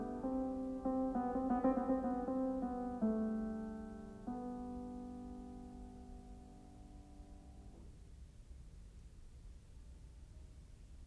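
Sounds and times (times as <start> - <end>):
prelude and fugue in G minor: 0.0 - 7.5.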